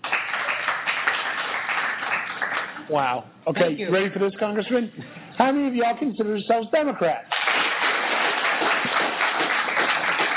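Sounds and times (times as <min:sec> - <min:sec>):
audience clapping at a college campus event: 0:00.0 - 0:02.9, 0:07.3 - 0:10.3
speech: 0:02.9 - 0:07.3.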